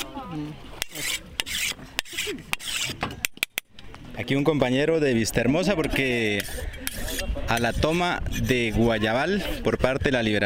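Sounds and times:
speech: 0.3s - 1.2s, 4.2s - 6.8s, 7.5s - 10.4s
machete being sharpened: 0.8s - 3.6s, 6.3s - 8.7s.

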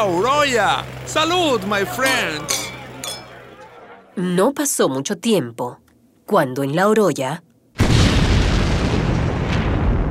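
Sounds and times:
speech: 0.0s - 2.6s, 4.2s - 7.5s
explosion of smelting furnaces at the La Oroya mine works: 7.8s - 10.1s.

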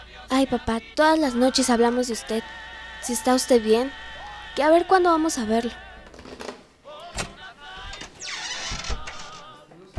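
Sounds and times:
speech: 0.3s - 5.8s
door being opened: 6.1s - 9.9s.

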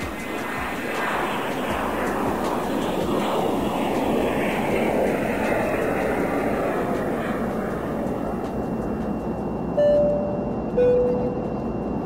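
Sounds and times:
airplane engine in flight: 0.0s - 12.0s
high chime tones: 9.8s - 11.7s.

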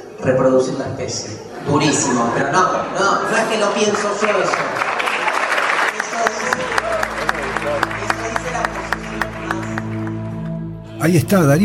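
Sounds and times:
speech: 0.2s - 4.9s, 11.0s - 11.6s
audience applause: 3.7s - 10.6s.

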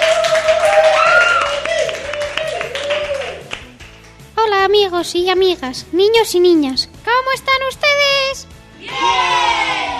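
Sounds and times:
audience applause: 0.0s - 3.7s
speech: 4.9s - 9.4s.

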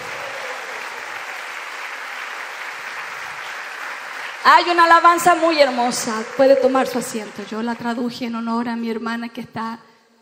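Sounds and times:
audience applause: 0.0s - 8.3s
speech: 4.4s - 9.9s.

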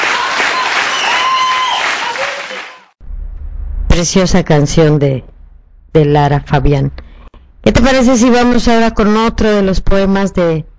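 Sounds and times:
audience applause: 0.0s - 3.0s
speech: 4.0s - 5.3s, 5.9s - 7.0s, 7.6s - 10.7s.

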